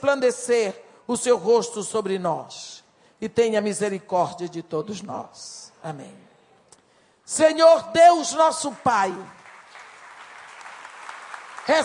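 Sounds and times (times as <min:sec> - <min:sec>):
speech: 0:00.0 - 0:06.3, 0:07.3 - 0:09.4, 0:11.7 - 0:11.8
audience applause: 0:09.0 - 0:11.8.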